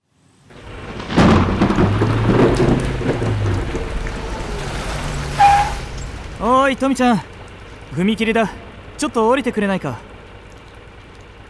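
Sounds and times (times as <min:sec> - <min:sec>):
heavy rain: 0:00.4 - 0:11.4
thunder rumbling: 0:00.5 - 0:07.9
speech: 0:06.7 - 0:07.3, 0:08.0 - 0:10.1.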